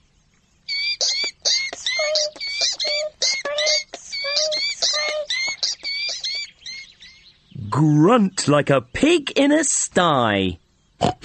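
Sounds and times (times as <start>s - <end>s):
mouse squeaking: 0.7s - 6.9s
speech: 7.8s - 11.1s.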